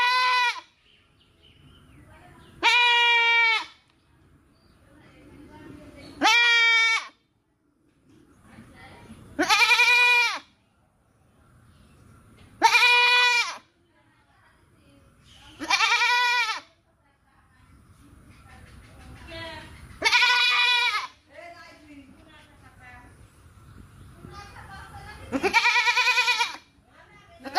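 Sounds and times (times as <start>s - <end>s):
happy goat bleating: 0.0s - 0.7s, 2.6s - 3.8s, 6.2s - 7.2s, 9.4s - 10.5s, 12.6s - 13.7s, 15.6s - 16.7s, 20.0s - 21.2s, 25.3s - 26.7s, 27.4s - 27.5s.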